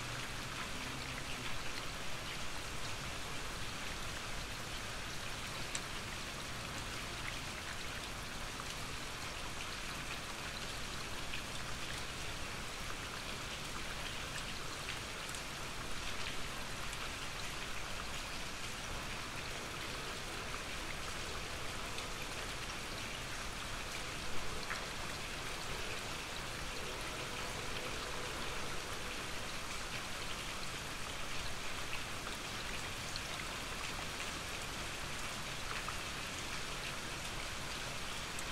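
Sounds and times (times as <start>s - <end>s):
gentle rain: 0.0s - 38.5s.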